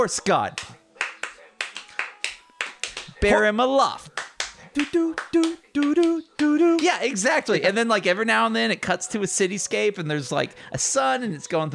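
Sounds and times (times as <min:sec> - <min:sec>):
speech: 0:00.0 - 0:00.8, 0:03.2 - 0:04.1, 0:04.8 - 0:11.7
rhythmic hand clapping: 0:00.5 - 0:03.4, 0:04.0 - 0:07.2.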